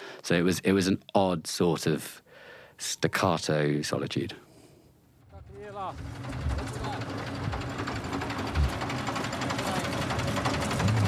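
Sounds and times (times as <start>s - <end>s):
speech: 0.3s - 2.2s, 2.8s - 4.4s, 5.8s - 6.4s
truck engine rumbling as the vehicle pulls over: 5.2s - 11.0s.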